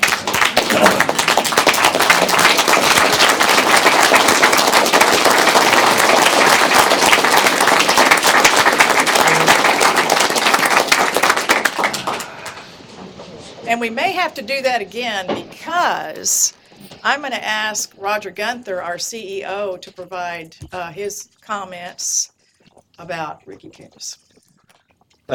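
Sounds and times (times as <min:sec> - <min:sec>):
large crowd giving standing round of applause: 0:00.0 - 0:12.8
speech: 0:13.8 - 0:22.3, 0:23.0 - 0:24.2.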